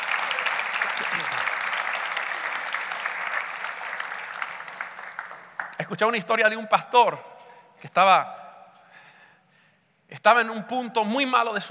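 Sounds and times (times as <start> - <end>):
audience applause: 0.0 - 5.8
speech: 5.8 - 8.4, 10.2 - 11.6.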